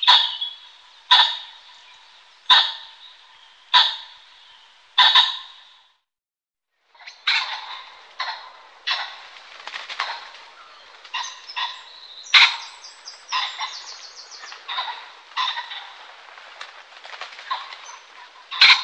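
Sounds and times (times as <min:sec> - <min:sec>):
Common pheasant calling with harsh notes: 0:00.0 - 0:05.9, 0:07.0 - 0:18.8.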